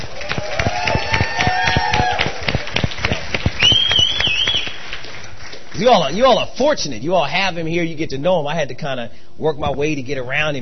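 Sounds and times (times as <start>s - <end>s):
audience applause: 0.0s - 6.1s
speech: 5.8s - 10.6s.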